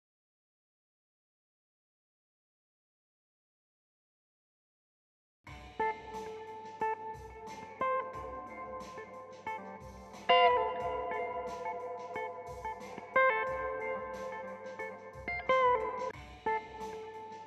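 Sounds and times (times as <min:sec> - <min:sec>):
guitar: 0:05.5 - 0:17.4.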